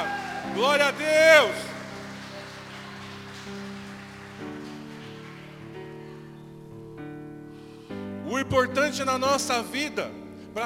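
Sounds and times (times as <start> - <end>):
speech: 0.0 - 1.7, 8.3 - 10.6
audience applauding: 0.0 - 6.6.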